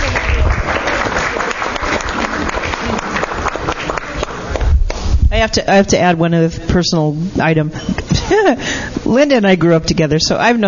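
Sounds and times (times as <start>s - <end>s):
audience applause for performers: 0.0s - 4.6s
speech: 5.4s - 10.6s.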